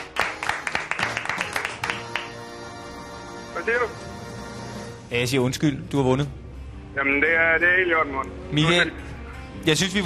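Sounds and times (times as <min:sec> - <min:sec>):
hand clapping: 0:00.0 - 0:02.5
speech: 0:03.6 - 0:04.1, 0:05.1 - 0:10.0.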